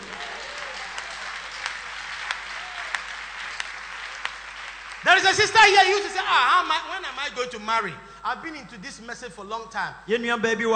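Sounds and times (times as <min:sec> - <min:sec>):
audience clapping: 0:00.0 - 0:07.1
speech: 0:05.0 - 0:10.7.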